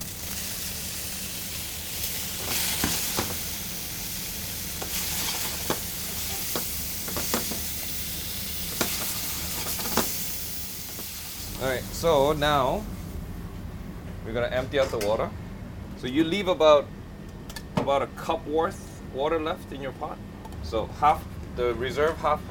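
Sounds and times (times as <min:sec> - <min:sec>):
steak sizzling in a hot pan: 0:00.0 - 0:12.1
speech: 0:12.0 - 0:12.9, 0:14.3 - 0:15.4, 0:16.0 - 0:17.0, 0:17.9 - 0:22.4.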